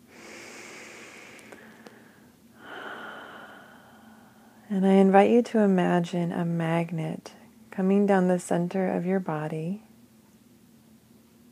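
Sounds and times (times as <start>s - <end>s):
slow deep breath during a guided meditation: 0.0s - 4.6s
speech: 4.7s - 9.8s.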